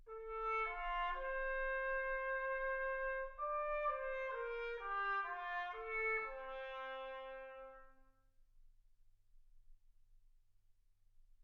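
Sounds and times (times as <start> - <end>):
trumpet: 0.0 - 8.2.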